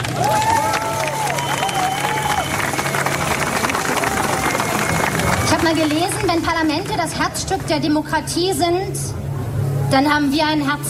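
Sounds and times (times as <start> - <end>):
audience applause: 0.0 - 7.3
speech: 5.7 - 9.2, 9.9 - 10.8.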